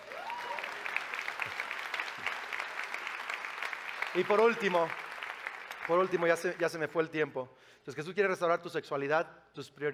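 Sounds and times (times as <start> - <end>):
audience applause: 0.0 - 6.7
speech: 4.2 - 5.0, 5.9 - 9.9.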